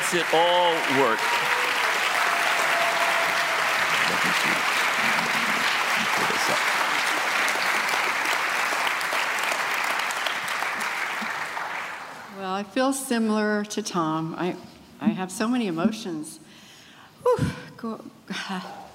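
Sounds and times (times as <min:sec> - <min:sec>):
audience applause: 0:00.0 - 0:12.4
speech: 0:00.1 - 0:01.6, 0:04.1 - 0:05.3, 0:06.2 - 0:06.8, 0:12.4 - 0:16.4, 0:17.3 - 0:18.8.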